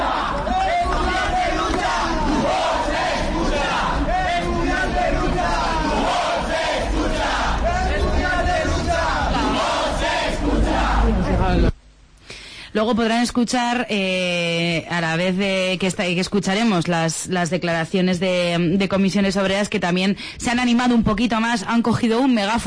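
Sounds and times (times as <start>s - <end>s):
protesting students shouting chants in unison: 0.0s - 11.5s
speech: 12.8s - 22.6s.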